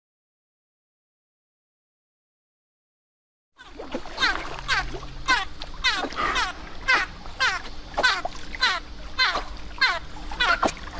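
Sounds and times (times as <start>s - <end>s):
dolphin burst-pulse calls: 3.6s - 10.9s.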